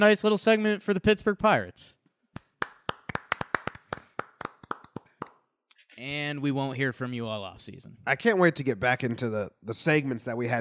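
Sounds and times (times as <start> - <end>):
speech: 0.0 - 2.0, 6.0 - 10.5
hand clapping: 2.3 - 5.5.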